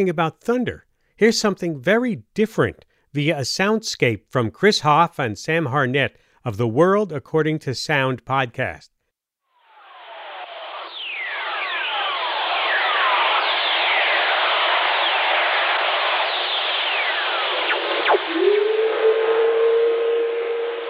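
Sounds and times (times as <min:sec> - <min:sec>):
speech: 0:00.0 - 0:09.0
earth whistlers, lightning radio emissions: 0:09.6 - 0:20.8
low-pitched hum: 0:09.7 - 0:20.8
radio static hiss: 0:09.7 - 0:20.8.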